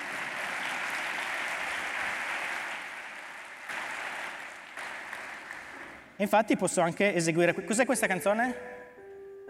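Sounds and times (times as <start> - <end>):
audience applause: 0.0 - 6.2
speech: 6.2 - 8.8.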